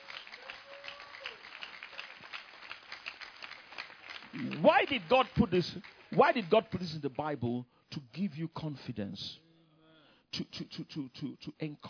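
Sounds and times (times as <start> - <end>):
audience clapping: 0.0 - 7.2
speech: 4.4 - 9.4, 10.3 - 11.8.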